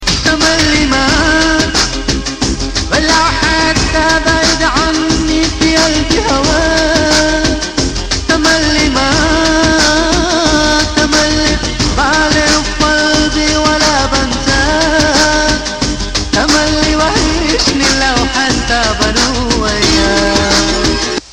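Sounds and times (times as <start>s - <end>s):
Arabic music mix: 0.0s - 21.3s.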